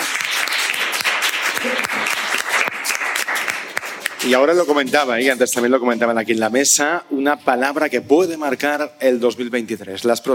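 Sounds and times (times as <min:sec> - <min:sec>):
applause: 0:00.0 - 0:04.8
speech: 0:04.2 - 0:10.3.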